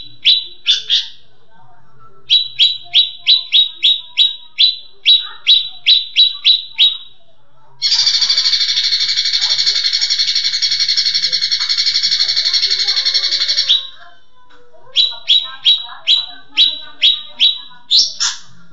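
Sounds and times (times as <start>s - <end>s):
leafbird singing chip notes: 2.3s - 7.2s, 7.8s - 14.0s, 14.9s - 18.5s.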